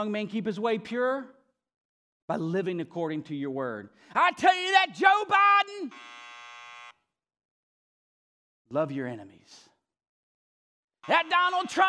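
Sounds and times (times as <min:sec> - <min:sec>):
speech: 0:00.0 - 0:01.4, 0:02.3 - 0:06.2, 0:08.7 - 0:09.6, 0:11.1 - 0:11.8
harsh steady electronic buzzer: 0:05.8 - 0:07.1, 0:11.0 - 0:11.8.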